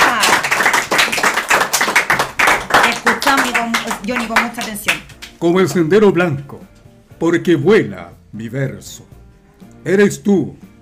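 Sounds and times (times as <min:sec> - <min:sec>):
crowd clapping: 0:00.0 - 0:05.5
speech: 0:04.1 - 0:09.2, 0:09.8 - 0:10.7.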